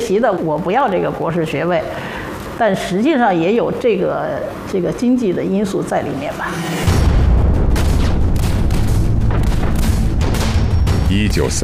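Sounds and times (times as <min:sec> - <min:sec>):
speech: 0:00.0 - 0:07.0, 0:11.1 - 0:11.6
artillery cannon fire sound effect: 0:06.9 - 0:10.9.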